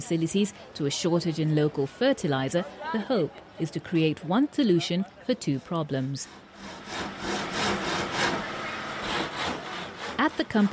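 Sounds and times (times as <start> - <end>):
speech: 0.0 - 7.2, 10.2 - 10.7
carpenter's handsaw cutting wood for doors: 5.5 - 10.7.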